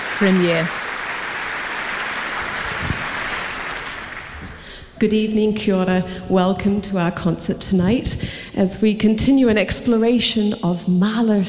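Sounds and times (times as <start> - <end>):
concert audience applause for an orchestra: 0.0 - 4.8
speech: 0.2 - 0.8, 5.0 - 11.4.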